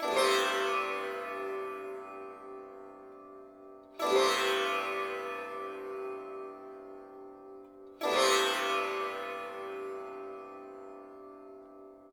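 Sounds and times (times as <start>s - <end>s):
sitar: 0.0s - 12.1s.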